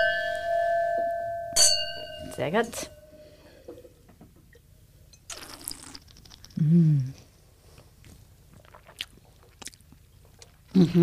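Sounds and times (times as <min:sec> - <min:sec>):
wine glasses clinking in a toast: 0:00.0 - 0:03.4
speech: 0:02.4 - 0:03.0, 0:06.7 - 0:07.2, 0:10.8 - 0:11.0.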